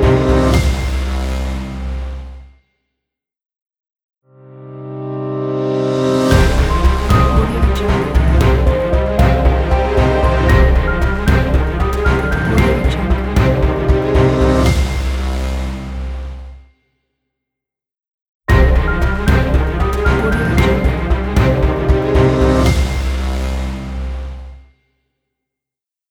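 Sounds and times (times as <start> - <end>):
Breaking News intro music: 0.0 - 1.4, 4.4 - 16.2, 18.5 - 24.4.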